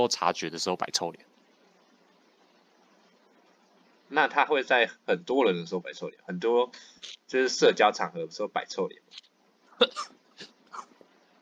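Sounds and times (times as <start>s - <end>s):
speech: 0.0s - 1.3s, 4.1s - 10.9s
person coughing: 9.8s - 10.9s.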